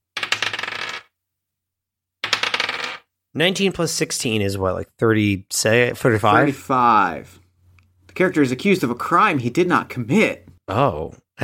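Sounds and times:
two twenty-sided dice clattering on a hard surface: 0.2s - 1.1s, 2.2s - 3.1s
speech: 3.4s - 7.4s, 8.2s - 11.4s.

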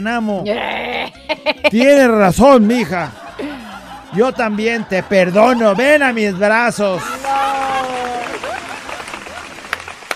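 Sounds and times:
speech: 0.0s - 3.2s, 4.1s - 7.4s
laughter: 0.4s - 10.0s
applause: 6.9s - 10.1s.

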